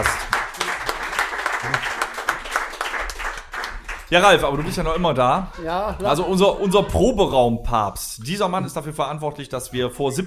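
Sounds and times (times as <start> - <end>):
applause: 0.0 - 4.8
speech: 4.1 - 10.2.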